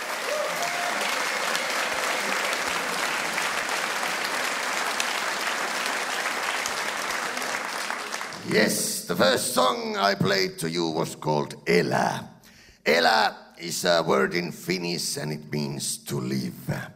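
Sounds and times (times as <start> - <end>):
audience applause: 0.0 - 9.1
speech: 8.5 - 16.9.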